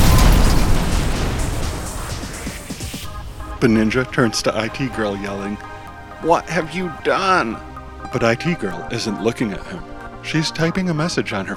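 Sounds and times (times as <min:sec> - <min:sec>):
van exploding into a fireball: 0:00.0 - 0:03.7
speech: 0:03.6 - 0:11.5.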